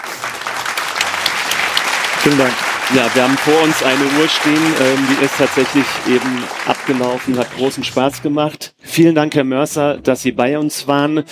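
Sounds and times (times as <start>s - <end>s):
audience applause: 0.0s - 8.2s
speech: 2.2s - 11.2s.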